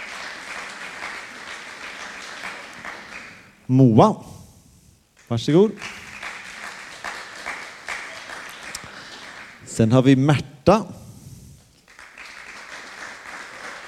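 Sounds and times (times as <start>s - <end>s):
audience applause: 0.0s - 3.6s, 5.8s - 9.6s, 11.8s - 13.8s
speech: 3.7s - 4.3s, 5.3s - 5.9s, 9.8s - 11.0s.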